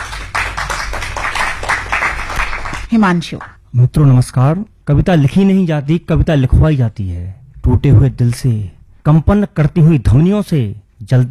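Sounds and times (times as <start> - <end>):
audience applause welcoming a poet onto the stage: 0.0 - 2.9
speech: 2.9 - 11.2.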